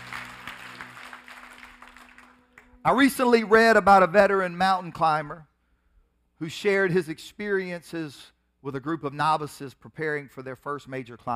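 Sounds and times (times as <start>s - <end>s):
crowd clapping: 0.0s - 2.9s
speech: 2.8s - 5.5s, 6.4s - 11.3s.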